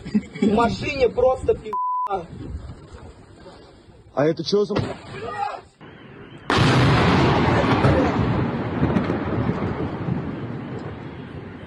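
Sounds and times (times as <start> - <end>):
speech: 0.4 - 2.6, 4.2 - 5.7
downed drone crashing into a house: 6.5 - 10.2.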